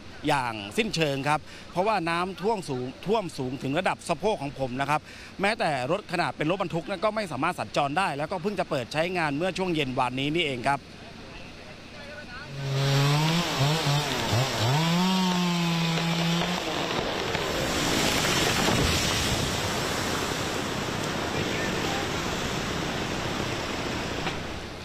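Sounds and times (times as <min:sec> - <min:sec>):
speech: 0:00.2 - 0:11.0
chainsaw felling large trees: 0:12.5 - 0:24.7.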